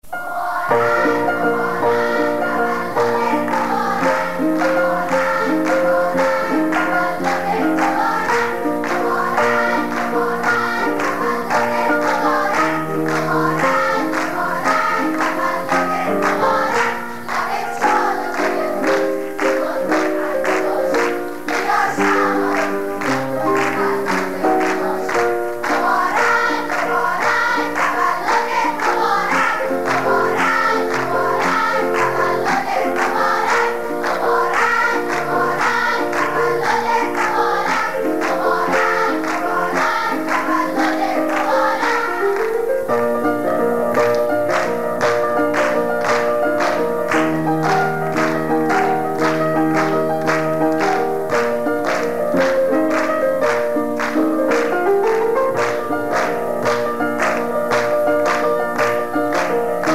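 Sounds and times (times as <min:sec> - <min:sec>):
choir singing: 0:00.0 - 0:59.9.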